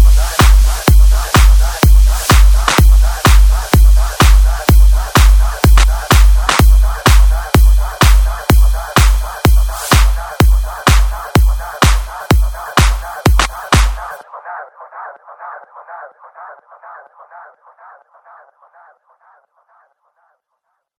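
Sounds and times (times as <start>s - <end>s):
music mashup: 0.0s - 14.2s.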